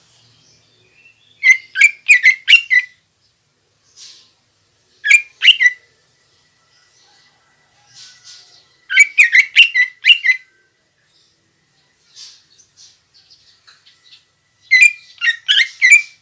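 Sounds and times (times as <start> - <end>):
female greater green leafbird sharp chirps: 0.0 - 16.2.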